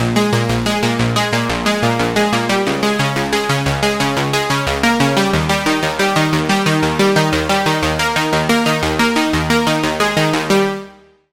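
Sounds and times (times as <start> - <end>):
Sylenth1 synth pluck: 0.0 - 10.9.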